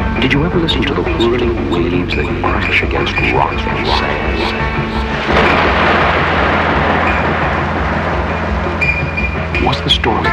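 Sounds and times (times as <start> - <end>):
speech: 0.2 - 6.2, 9.6 - 10.3
storm thunder rumbling: 2.3 - 10.3.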